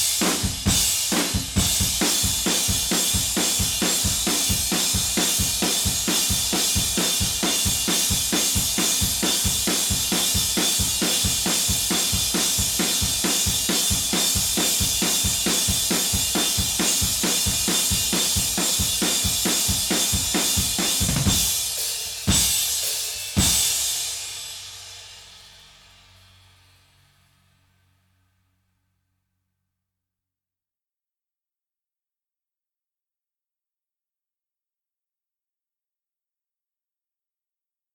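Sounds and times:
drums: 0.0s - 27.9s.

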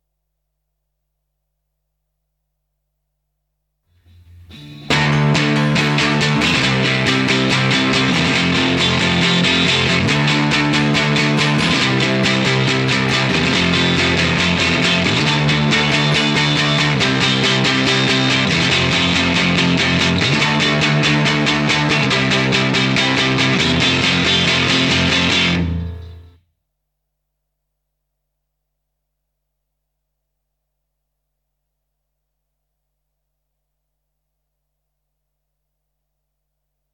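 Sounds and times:
guitar: 3.9s - 26.4s.

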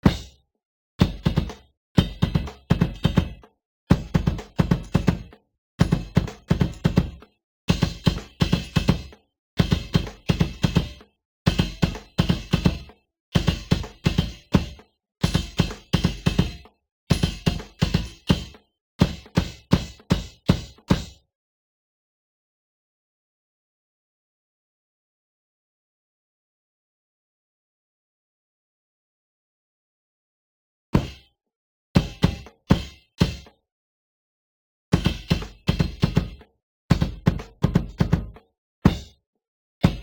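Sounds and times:
bass drum: 0.0s - 0.4s, 1.0s - 21.2s, 35.0s - 39.1s, 39.8s - 40.0s.

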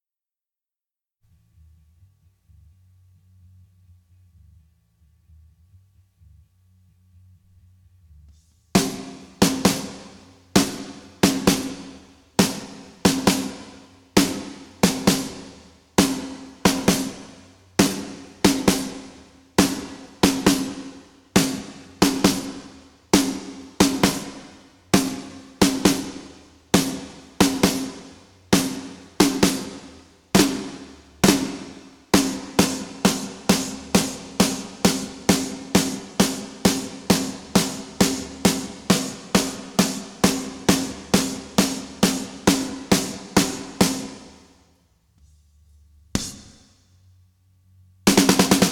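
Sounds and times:
drums: 8.5s - 44.8s, 46.1s - 47.0s, 48.0s - 48.7s.

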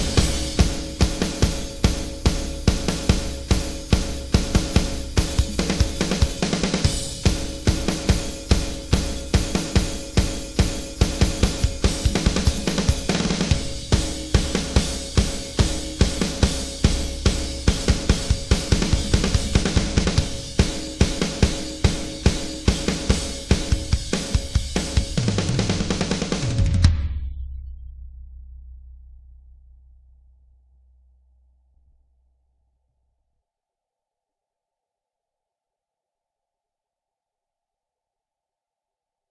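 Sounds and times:
drums: 0.0s - 29.5s.

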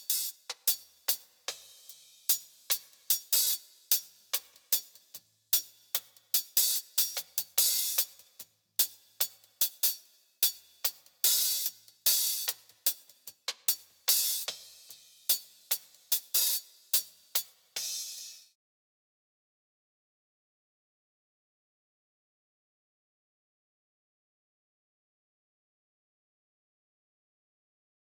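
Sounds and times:
cymbals: 0.0s - 13.1s, 13.7s - 18.5s.

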